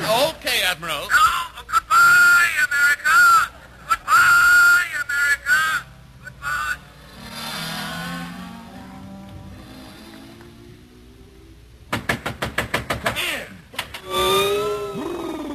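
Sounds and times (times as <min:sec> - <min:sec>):
steady tonal hum: 0:00.0 - 0:11.9
speech: 0:00.3 - 0:01.2
door being opened with rattling knocks: 0:11.9 - 0:14.0.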